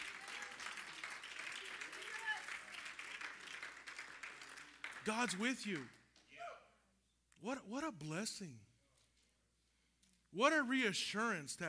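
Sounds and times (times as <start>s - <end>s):
audience hand clapping: 0.0s - 6.3s
speech: 5.0s - 6.0s, 7.4s - 8.7s, 10.3s - 11.6s.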